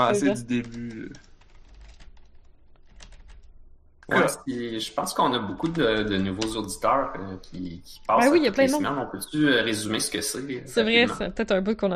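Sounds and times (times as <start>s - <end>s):
speech: 0.0s - 1.3s, 4.1s - 11.9s
computer keyboard typing a game's name: 0.5s - 3.5s.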